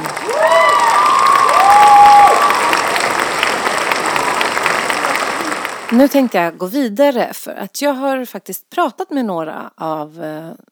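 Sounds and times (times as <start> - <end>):
audience applause: 0.0 - 6.6
speech: 6.0 - 10.7.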